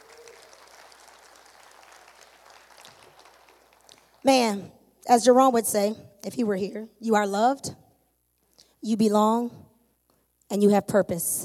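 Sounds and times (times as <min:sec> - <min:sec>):
audience clapping: 0:00.0 - 0:04.3
speech: 0:04.2 - 0:07.8, 0:08.8 - 0:09.7, 0:10.5 - 0:11.4.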